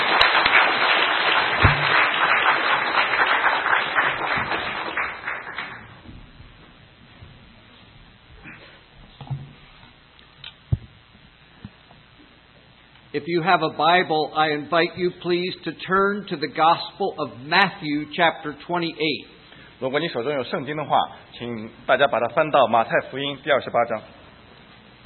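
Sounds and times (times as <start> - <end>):
audience applause welcoming a guest speaker: 0.0 - 6.0
speech: 13.2 - 24.2.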